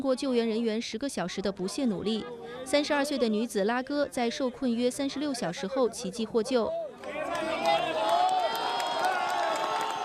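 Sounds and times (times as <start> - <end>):
speech: 0.0 - 6.8
rescue workers cheering and whooping: 6.9 - 10.0
rescue workers applauding: 7.0 - 10.0.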